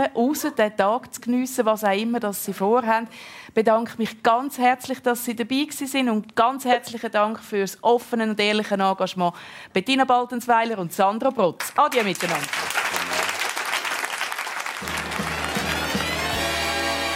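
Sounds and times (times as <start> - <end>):
speech: 0.0 - 12.8
theatre audience applause: 11.9 - 17.0.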